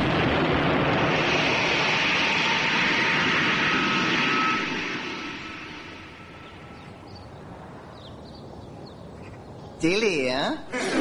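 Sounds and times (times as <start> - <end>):
rocket engine roaring at takeoff: 0.0 - 8.0
speech: 9.8 - 10.9
laughter: 10.7 - 10.9.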